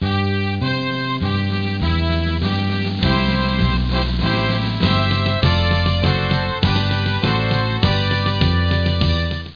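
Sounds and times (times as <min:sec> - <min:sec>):
anthem music: 0:00.2 - 0:09.5.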